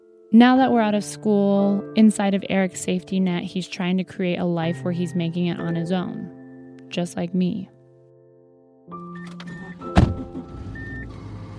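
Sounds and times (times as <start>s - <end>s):
speech: 0.3s - 7.8s
car door thunk: 9.2s - 10.8s
car interior tones: 9.2s - 11.5s.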